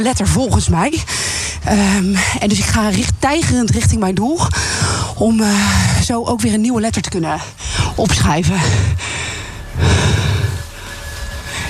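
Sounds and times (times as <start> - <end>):
speech: 0.0 - 9.0
person panting heavily: 4.5 - 5.2, 8.6 - 10.7.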